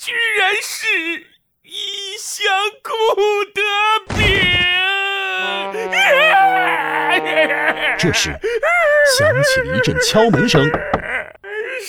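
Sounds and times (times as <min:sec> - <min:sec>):
speech: 0:00.0 - 0:04.8, 0:07.7 - 0:11.0
steady low hum: 0:05.3 - 0:08.7
person crying loudly: 0:05.4 - 0:09.1.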